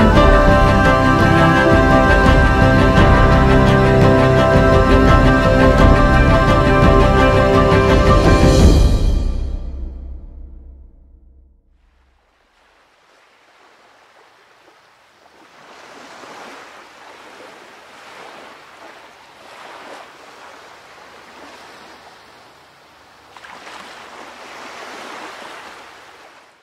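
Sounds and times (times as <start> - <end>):
cello: 0.0 - 9.0
piano: 0.0 - 11.4.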